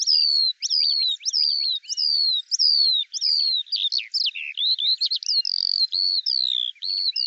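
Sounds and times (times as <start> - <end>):
Eurasian skylark song: 0.0 - 7.2.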